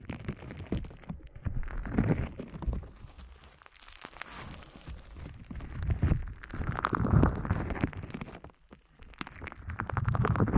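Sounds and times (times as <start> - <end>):
bubble wrap handled: 0.0 - 10.5
sponge handled: 0.6 - 8.6.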